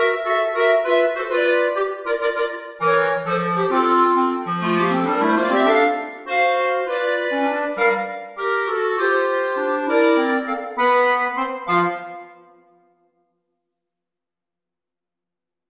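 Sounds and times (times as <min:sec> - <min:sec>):
jazz played on clarinet: 0:00.0 - 0:12.4.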